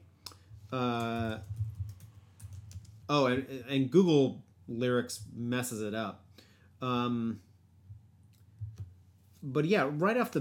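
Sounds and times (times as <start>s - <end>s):
speech: 0.7s - 1.5s, 3.1s - 6.2s, 6.8s - 7.5s, 9.4s - 10.3s
typing on a computer keyboard: 0.9s - 3.0s.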